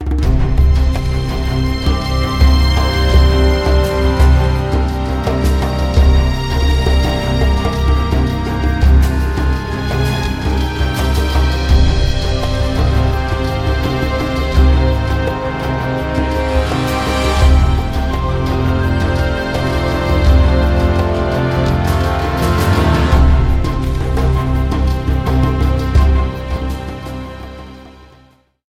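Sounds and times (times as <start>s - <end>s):
orchestra: 0.0s - 28.6s.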